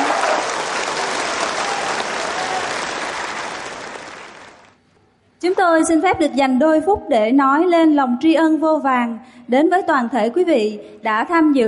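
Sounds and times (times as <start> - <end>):
audience applause: 0.0 - 4.8
speech: 5.5 - 11.6.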